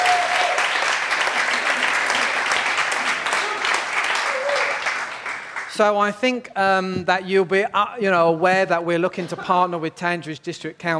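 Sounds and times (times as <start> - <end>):
audience applause: 0.0 - 5.7
speech: 5.8 - 10.9.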